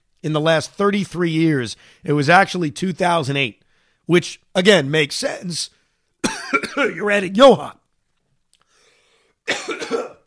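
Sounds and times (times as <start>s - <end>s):
speech: 0.2s - 5.8s, 6.5s - 7.8s
person coughing while choking up: 6.2s - 7.0s, 9.5s - 10.2s.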